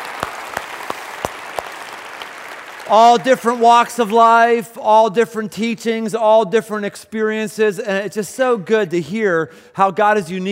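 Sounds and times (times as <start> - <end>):
audience applause: 0.0 - 4.2
speech: 2.9 - 10.5.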